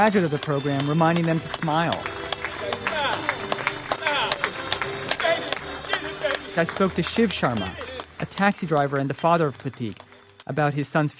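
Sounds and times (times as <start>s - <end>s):
speech: 0.0s - 2.2s, 6.6s - 11.1s
crowd of well-wishers applauding: 0.0s - 11.1s.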